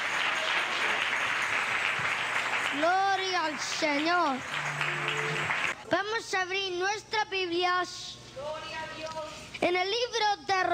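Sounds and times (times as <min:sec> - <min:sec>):
church congregation applauding: 0:00.0 - 0:05.8
speech: 0:02.7 - 0:05.1, 0:06.2 - 0:10.7.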